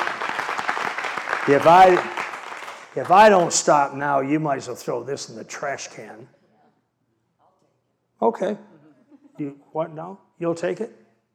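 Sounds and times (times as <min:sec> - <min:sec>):
congregation clapping during a lively church service: 0:00.0 - 0:04.0
speech: 0:01.5 - 0:02.2, 0:02.9 - 0:06.4, 0:08.2 - 0:08.7, 0:09.4 - 0:11.0.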